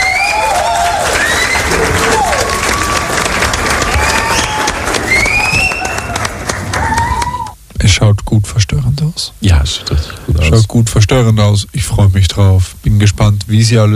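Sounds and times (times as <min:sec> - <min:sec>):
whistles: 0:00.0 - 0:00.4, 0:03.9 - 0:06.2
crowd applauding: 0:00.0 - 0:07.6
people cheering: 0:00.0 - 0:07.6
speech: 0:07.9 - 0:13.9.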